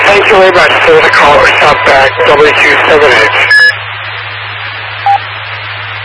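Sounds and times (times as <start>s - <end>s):
low hum: 0.0s - 6.0s
radio transmission noise with falling pitch: 0.0s - 6.0s
speech: 0.3s - 3.5s
short beep: 3.5s - 3.8s, 5.0s - 5.3s.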